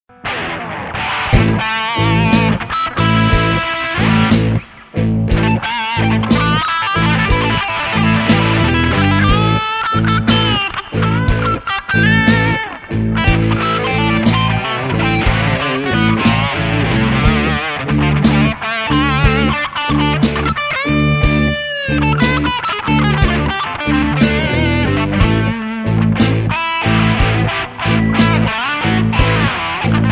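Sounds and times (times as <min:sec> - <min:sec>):
blues music: 0:00.1 - 0:30.1.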